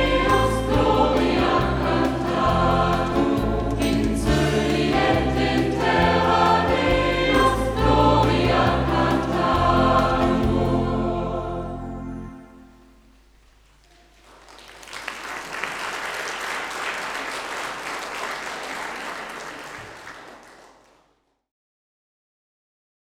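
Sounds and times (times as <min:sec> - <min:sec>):
choir singing a liturgical chant live: 0:00.0 - 0:12.9.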